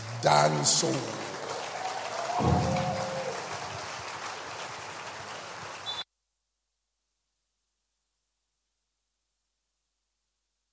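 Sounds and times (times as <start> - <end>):
audience clapping: 0.0 - 6.0
speech: 0.2 - 1.3, 2.4 - 3.0.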